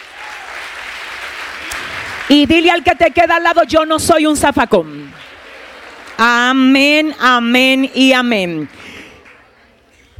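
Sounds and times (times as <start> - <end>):
audience applause: 0.0 - 3.5, 4.7 - 6.6
speech: 2.3 - 5.3, 6.2 - 8.8.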